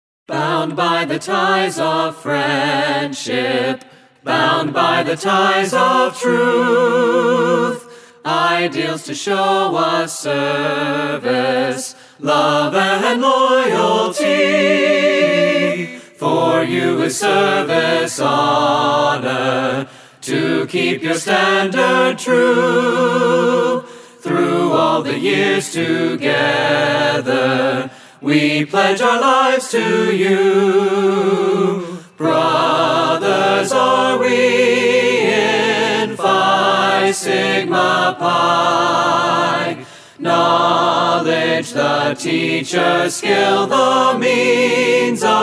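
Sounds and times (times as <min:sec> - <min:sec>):
a cappella singing: 0:00.3 - 0:45.4.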